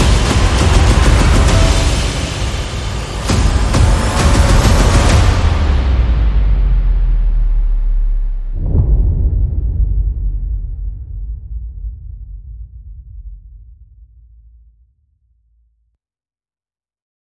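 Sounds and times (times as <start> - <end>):
sound effects: 0.0 - 8.9
percussion: 0.0 - 13.4.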